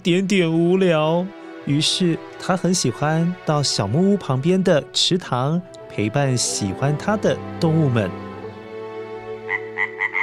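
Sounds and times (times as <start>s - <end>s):
speech: 0.0s - 8.3s
frog croaking: 9.4s - 10.2s.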